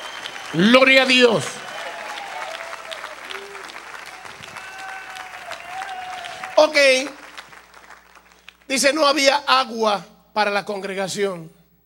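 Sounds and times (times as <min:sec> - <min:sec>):
audience applauding: 0:00.0 - 0:08.7
speech: 0:00.5 - 0:01.6, 0:06.6 - 0:07.2, 0:08.7 - 0:11.6.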